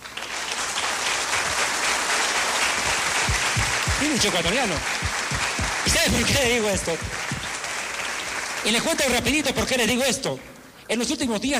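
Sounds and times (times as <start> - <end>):
audience applause: 0.0 - 9.9
speech: 4.1 - 5.0, 6.0 - 7.2, 8.6 - 11.5.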